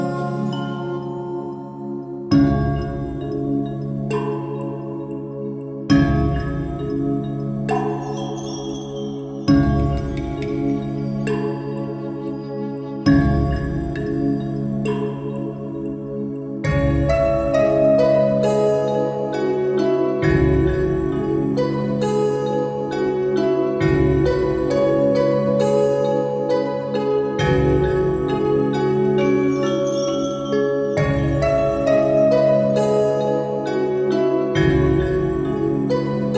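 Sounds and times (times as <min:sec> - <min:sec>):
relaxing forest music with Japanese ambience: 0:00.0 - 0:36.3.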